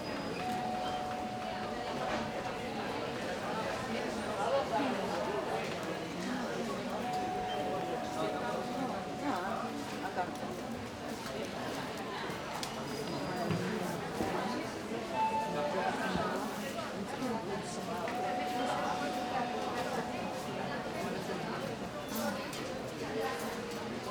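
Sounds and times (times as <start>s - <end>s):
murmur of people in a sanatorium entrance hall: 0.0s - 24.0s
call bells ringing in a sanatorium entrance hall: 0.4s - 3.1s, 7.0s - 10.5s, 18.2s - 21.6s.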